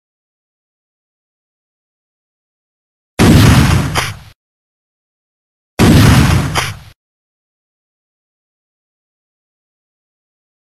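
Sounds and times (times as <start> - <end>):
shotgun shot: 3.2 - 4.4, 5.8 - 7.0.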